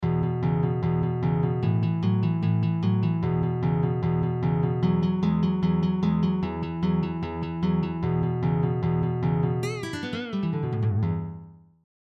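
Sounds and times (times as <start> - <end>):
12 bar blues with pentascale: 0.0 - 11.4.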